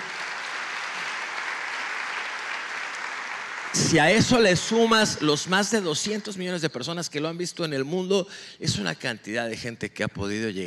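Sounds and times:
audience applause: 0:00.0 - 0:05.0
speech: 0:03.7 - 0:10.6.

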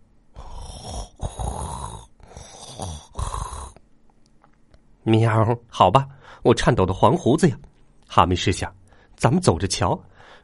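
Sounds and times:
loud rasping snores: 0:00.4 - 0:03.8
speech: 0:05.0 - 0:10.4.

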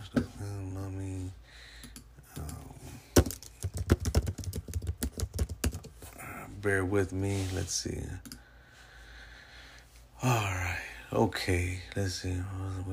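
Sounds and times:
speech: 0:00.1 - 0:00.3, 0:06.7 - 0:08.3, 0:10.2 - 0:12.9
typing on a computer keyboard: 0:03.2 - 0:05.9.

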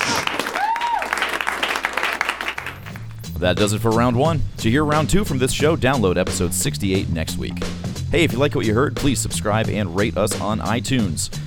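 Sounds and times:
audience applause: 0:00.0 - 0:03.2
speech: 0:03.4 - 0:11.4.

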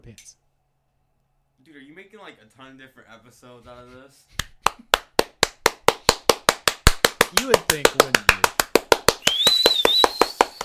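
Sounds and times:
speech: 0:00.0 - 0:00.4, 0:01.7 - 0:04.9, 0:07.3 - 0:08.7
slow hand claps offered as live studio audience applause: 0:04.4 - 0:10.6.

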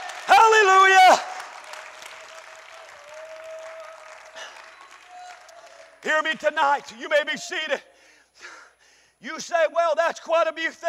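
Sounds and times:
audience clapping: 0:00.0 - 0:06.6
speech: 0:06.1 - 0:08.6, 0:09.2 - 0:10.8.

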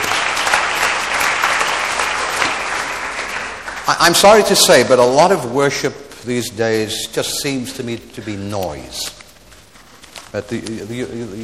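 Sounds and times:
audience applause for worship team: 0:00.0 - 0:04.7
speech: 0:03.9 - 0:09.2, 0:10.3 - 0:11.4.

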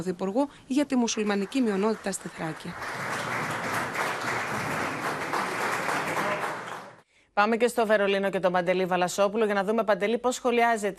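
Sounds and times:
speech: 0:00.0 - 0:03.1, 0:07.4 - 0:10.9
group applause: 0:01.1 - 0:07.0.

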